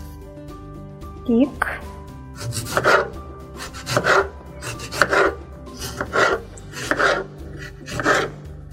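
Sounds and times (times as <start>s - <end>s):
speech: 1.3s - 3.2s
knife cutting a tomato into cubes on a cutting board: 2.4s - 8.7s.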